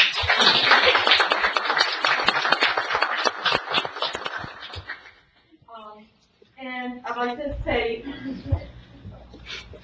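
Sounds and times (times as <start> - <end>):
crowd clapping: 0.0 - 5.2
speech: 7.6 - 8.7.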